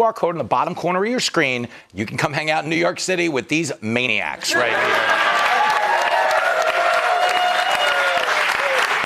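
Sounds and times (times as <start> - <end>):
speech: 0.0 - 5.5
studio audience applause: 4.5 - 9.0
cheers and whoops: 4.6 - 9.0.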